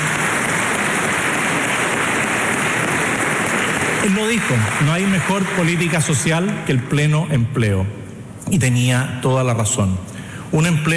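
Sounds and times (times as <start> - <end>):
audience applause: 0.0 - 6.7
speech: 4.0 - 10.9.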